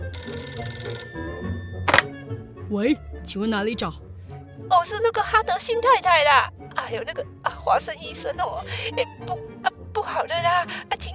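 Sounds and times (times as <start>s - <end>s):
telephone ringing: 0.0s - 2.2s
speech: 2.7s - 11.1s.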